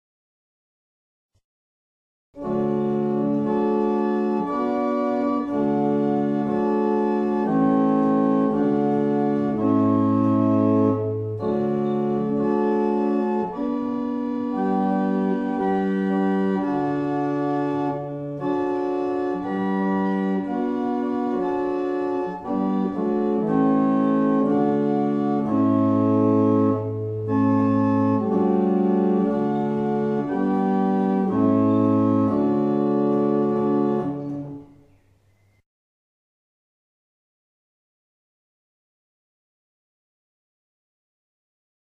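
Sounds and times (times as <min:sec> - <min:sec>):
barrel organs playing: 0:02.4 - 0:35.6.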